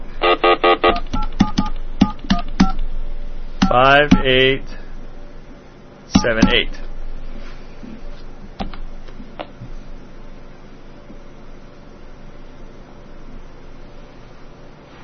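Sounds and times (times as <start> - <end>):
touch-tone keypad DTMF beeps dialing a telephone number: 0.9 - 2.8
person talking: 3.7 - 4.8, 6.1 - 6.8.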